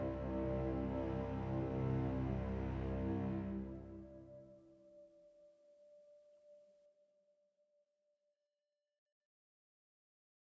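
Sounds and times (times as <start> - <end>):
instrumental music with reduced drums: 0.0 - 6.4.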